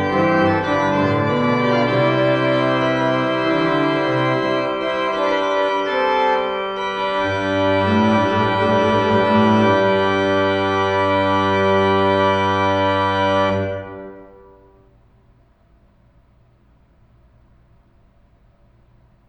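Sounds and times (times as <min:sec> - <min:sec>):
organ chorale prelude: 0:00.0 - 0:15.0.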